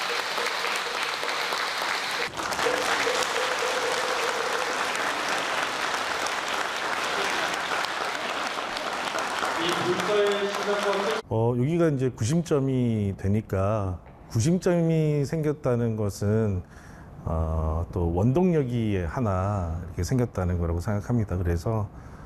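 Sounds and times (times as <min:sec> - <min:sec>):
large crowd applause: 0:00.0 - 0:11.2
speech: 0:10.7 - 0:22.1.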